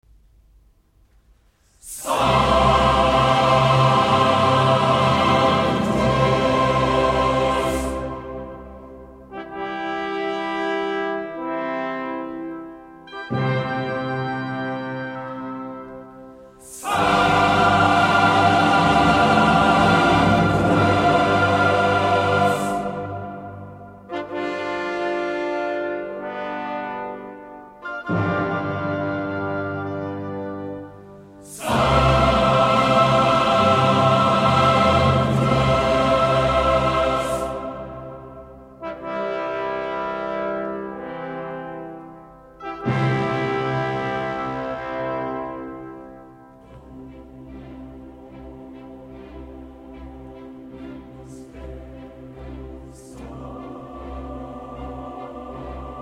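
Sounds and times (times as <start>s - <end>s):
choir singing a mass: 1.8s - 12.5s, 13.1s - 27.4s, 28.0s - 56.0s.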